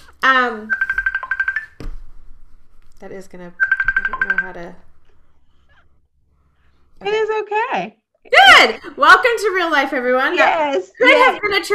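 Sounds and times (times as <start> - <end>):
speech: 0.2 - 0.8, 3.0 - 4.9, 7.0 - 11.7
phone ringing with incoming call: 0.6 - 1.8, 3.6 - 4.8.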